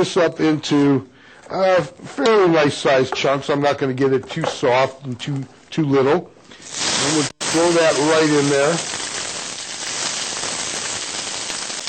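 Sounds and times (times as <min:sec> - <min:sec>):
speech: 0:00.0 - 0:09.0
chopped food sizzling in a hot pan: 0:06.6 - 0:11.8.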